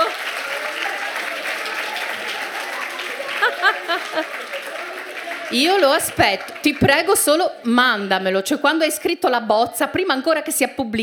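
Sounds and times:
laughter: 0.0 - 8.1
encouraging applause: 0.0 - 8.6
speech: 4.0 - 4.7, 5.5 - 11.0.

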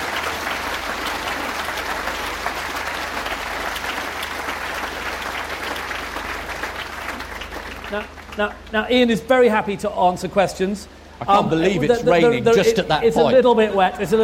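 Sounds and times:
audience applause: 0.0 - 8.8
speech: 7.9 - 14.2.

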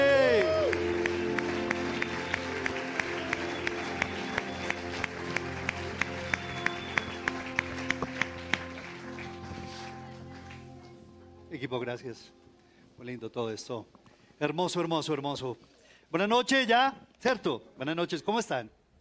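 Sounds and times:
audience applause: 0.0 - 11.0
sustained musical tone: 0.0 - 12.7
speech: 11.8 - 12.4, 13.0 - 18.8.

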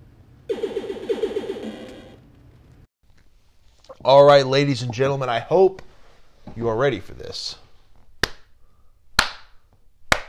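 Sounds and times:
speech: 4.0 - 5.9, 6.6 - 7.6
slow clap: 9.2 - 10.2.

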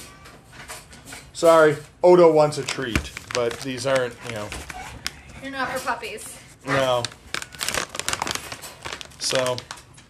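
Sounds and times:
speech: 1.4 - 4.7, 5.4 - 7.2, 9.2 - 9.8
crinkly plastic snack packaging being pulled open: 2.4 - 5.9, 6.5 - 10.0.

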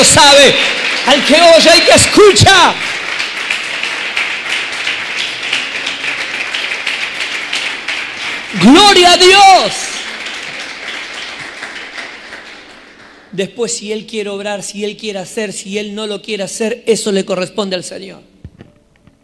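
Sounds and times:
speech: 0.0 - 2.9, 8.6 - 9.9, 13.4 - 18.3
audience clapping: 0.0 - 13.5.

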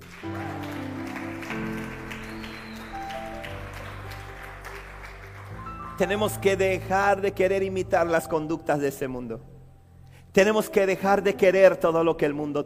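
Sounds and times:
audience applause: 0.0 - 6.6
sustained musical tones: 0.0 - 8.7
speech: 6.0 - 9.5, 10.3 - 12.6.

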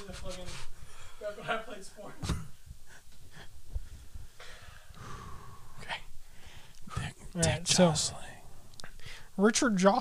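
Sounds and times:
speech: 0.1 - 2.6, 6.9 - 8.3, 9.4 - 9.9
man breathing heavily after laughing: 0.5 - 1.4, 2.6 - 7.0, 8.4 - 9.4.

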